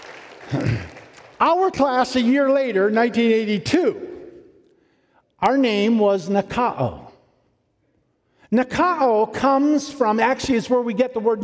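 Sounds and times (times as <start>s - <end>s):
audience applause: 0.0s - 1.4s
speech: 0.5s - 4.1s, 5.4s - 7.0s, 8.5s - 11.4s.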